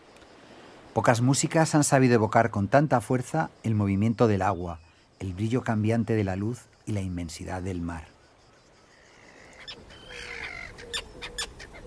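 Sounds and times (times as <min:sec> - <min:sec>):
speech: 0:01.0 - 0:08.1
noisy common terns calling in flight: 0:02.9 - 0:11.8.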